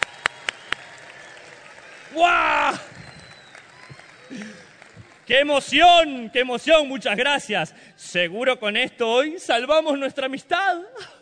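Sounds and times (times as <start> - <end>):
audience applause: 0.0 - 5.8
speech: 2.1 - 2.9, 5.3 - 11.2.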